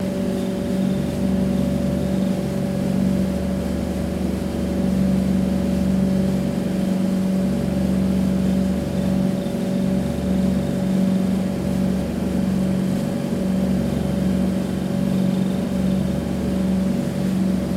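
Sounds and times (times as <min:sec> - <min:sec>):
inboard motorboat engine cruising: 0:00.0 - 0:17.7.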